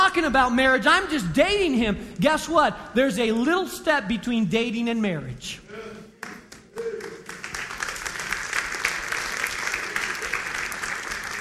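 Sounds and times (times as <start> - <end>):
speech: 0.2 - 6.0
audience clapping: 6.2 - 11.3.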